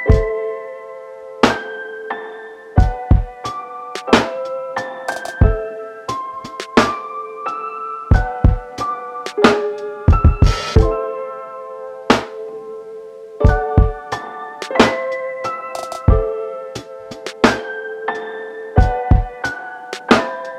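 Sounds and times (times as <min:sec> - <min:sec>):
chill lofi hip hop beat: 0:00.1 - 0:00.3, 0:01.5 - 0:01.7, 0:02.8 - 0:07.2, 0:08.1 - 0:11.0, 0:12.1 - 0:12.3, 0:13.4 - 0:18.3, 0:18.8 - 0:20.5.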